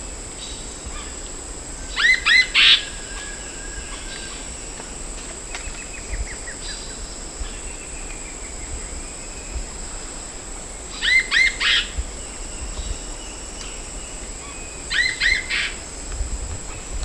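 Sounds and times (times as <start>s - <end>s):
bird chirps and buzzy notes: 0.0s - 17.0s
steady high hiss: 0.0s - 17.0s.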